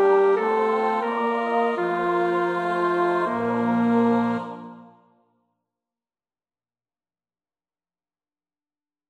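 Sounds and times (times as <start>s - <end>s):
bass: 0.0s - 4.7s.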